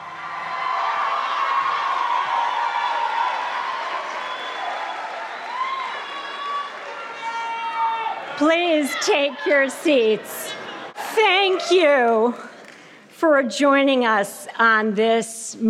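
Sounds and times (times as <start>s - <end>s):
graduation crowd cheering and clapping: 0.0s - 12.0s
whistles and whoops: 0.8s - 7.8s
speech: 8.4s - 12.5s, 13.2s - 15.6s.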